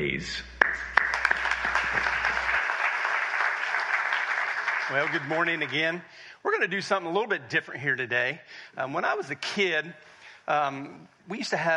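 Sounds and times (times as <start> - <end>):
speech: 0.0 - 0.5, 4.9 - 11.7
audience clapping to welcome a pastor: 0.6 - 6.0.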